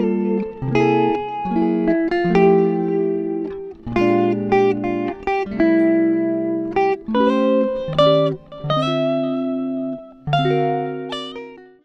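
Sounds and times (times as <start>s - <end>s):
clean electric guitars: 0.0s - 11.8s.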